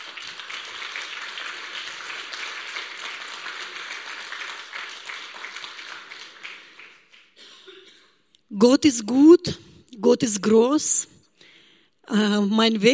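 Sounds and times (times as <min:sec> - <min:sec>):
crowd applause: 0:00.0 - 0:07.4
speech: 0:08.6 - 0:11.2, 0:12.1 - 0:12.9.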